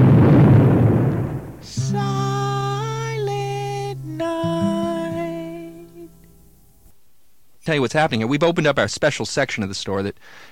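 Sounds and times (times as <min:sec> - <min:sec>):
loaded rubber cigar exploding while being smoked: 0:00.0 - 0:01.7
sustained musical tones: 0:01.7 - 0:06.9
speech: 0:07.7 - 0:10.5.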